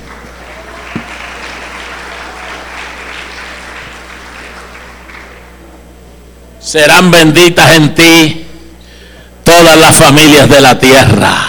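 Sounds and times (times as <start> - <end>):
congregation applauding during a Sunday morning church service: 0.0 - 5.7
speech: 6.7 - 8.4, 9.6 - 11.4.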